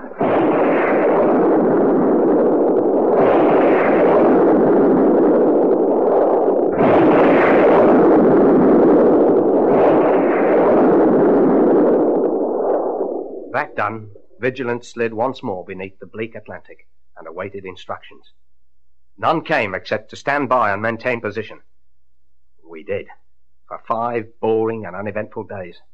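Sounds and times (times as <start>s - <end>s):
rocket launch roar: 0.0s - 15.3s
speech: 13.8s - 18.4s, 19.2s - 21.7s, 22.7s - 25.9s.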